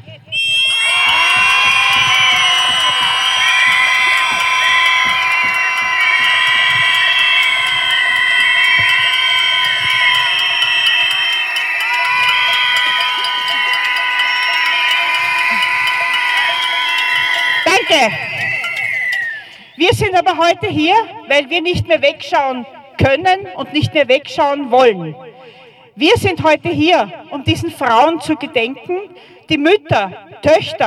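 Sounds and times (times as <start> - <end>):
crowd screaming together in protest: 0.3 - 19.8
speech: 20.2 - 25.2, 26.0 - 30.8.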